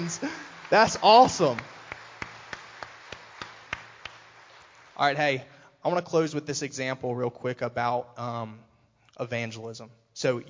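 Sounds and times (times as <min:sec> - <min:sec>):
audience clapping: 0:00.0 - 0:05.4
speech: 0:00.1 - 0:01.7, 0:05.0 - 0:10.4.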